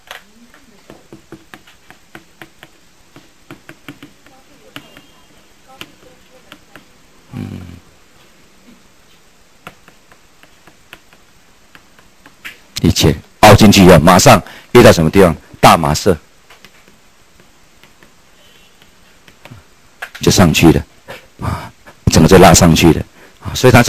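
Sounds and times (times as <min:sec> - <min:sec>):
noisy writing strokes on a board: 0:00.5 - 0:07.0, 0:09.1 - 0:12.5, 0:16.6 - 0:19.6
speech: 0:13.0 - 0:16.3, 0:20.3 - 0:21.0, 0:22.3 - 0:23.0, 0:23.6 - 0:23.8.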